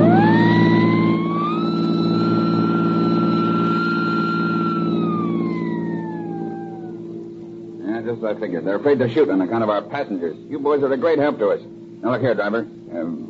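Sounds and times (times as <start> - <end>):
police siren wailing during car chase: 0.0 - 7.6
speech: 8.2 - 13.2.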